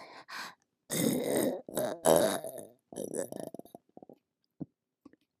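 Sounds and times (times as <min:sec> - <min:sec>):
burp: 0:00.9 - 0:04.1
oral sex sounds: 0:00.9 - 0:04.2
swallowing: 0:00.9 - 0:04.2.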